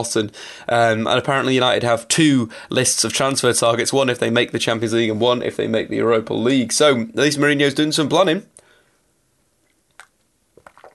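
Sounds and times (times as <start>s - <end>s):
speech: 0.0s - 8.6s
sipping coffee: 10.0s - 10.9s.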